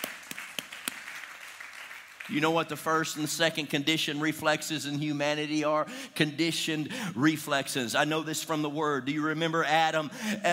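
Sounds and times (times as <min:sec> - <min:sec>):
audience hand clapping: 0:00.0 - 0:02.8
speech: 0:02.3 - 0:10.5.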